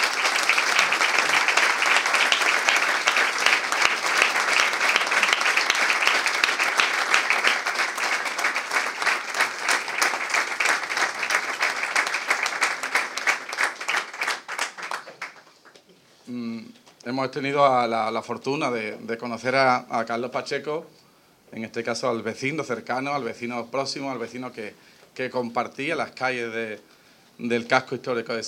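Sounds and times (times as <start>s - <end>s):
applause: 0.0s - 15.9s
speech: 17.2s - 21.0s, 21.6s - 28.4s.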